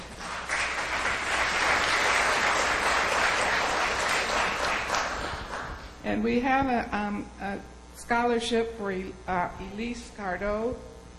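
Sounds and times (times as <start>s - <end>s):
audience applause: 0.0s - 5.8s
speech: 6.1s - 10.9s.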